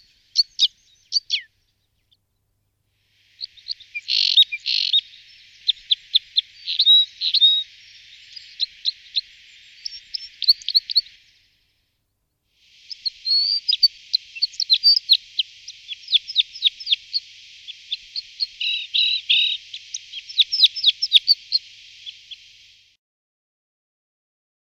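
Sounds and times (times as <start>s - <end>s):
red crossbill Loxia curvirostra calls: 3.3s - 11.3s, 12.6s - 22.7s.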